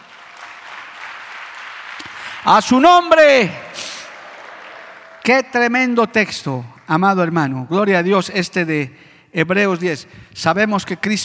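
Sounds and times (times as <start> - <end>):
audience applause: 0.0 - 7.1
speech: 2.4 - 3.6, 5.3 - 11.2.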